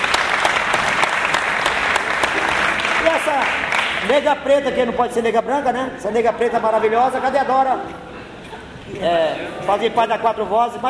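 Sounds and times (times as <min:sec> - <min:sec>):
audience applause: 0:00.0 - 0:04.2
speech: 0:04.1 - 0:08.1, 0:08.9 - 0:10.8.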